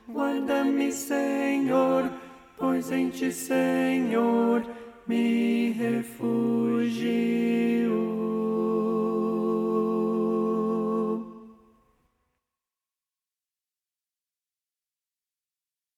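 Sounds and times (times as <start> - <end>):
tenor singing: 0.0 - 11.6.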